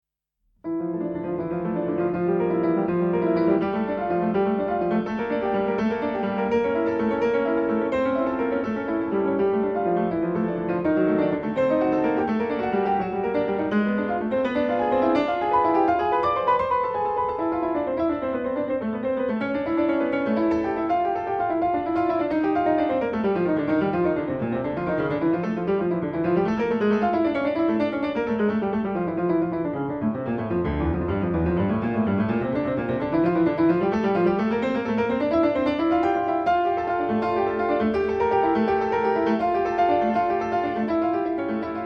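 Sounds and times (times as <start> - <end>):
prelude and toccata in D: 0.6 - 41.8.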